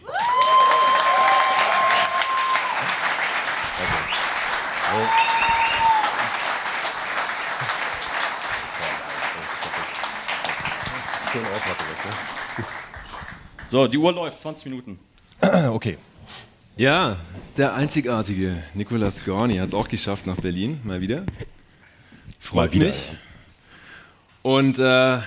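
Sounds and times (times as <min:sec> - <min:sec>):
live audience cheering: 0:00.0 - 0:13.3
speech: 0:13.7 - 0:21.4, 0:22.6 - 0:23.2, 0:24.4 - 0:25.2.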